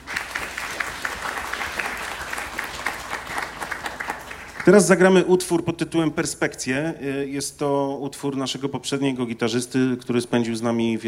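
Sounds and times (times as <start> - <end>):
audience applause: 0.0 - 5.0
speech: 4.7 - 11.0.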